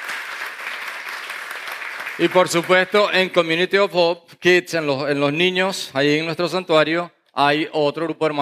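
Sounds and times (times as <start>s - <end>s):
audience applause: 0.0s - 3.5s
speech: 2.2s - 8.4s.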